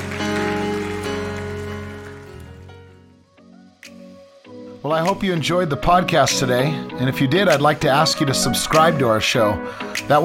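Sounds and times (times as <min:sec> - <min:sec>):
crowd clapping: 0:00.0 - 0:03.0
sustained organ-like chords: 0:00.0 - 0:03.2
speech: 0:04.8 - 0:10.2.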